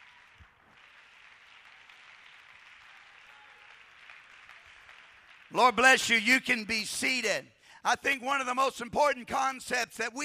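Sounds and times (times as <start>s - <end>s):
audience clapping hands: 0.0s - 6.3s
speech: 5.5s - 10.2s.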